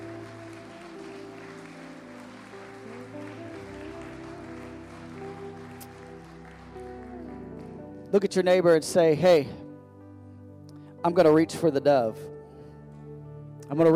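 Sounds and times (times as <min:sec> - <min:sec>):
audience hand clapping: 0:00.0 - 0:07.9
organ or keyboard chords: 0:00.0 - 0:13.9
speech: 0:08.1 - 0:09.6, 0:11.0 - 0:12.4, 0:13.7 - 0:13.9.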